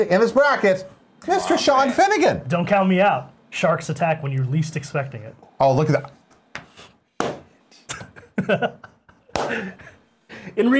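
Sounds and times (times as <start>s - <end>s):
speech: 0.0s - 6.2s, 8.4s - 8.9s, 9.5s - 10.7s
slow clap: 9.3s - 9.7s.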